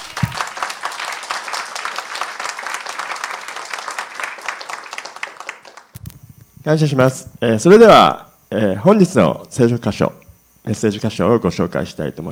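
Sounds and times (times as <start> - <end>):
audience applause: 0.0 - 6.0
speech: 6.6 - 12.3.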